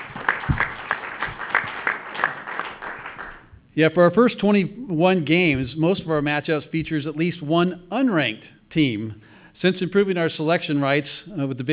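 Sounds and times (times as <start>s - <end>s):
audience applause: 0.0s - 3.4s
speech: 3.8s - 11.7s.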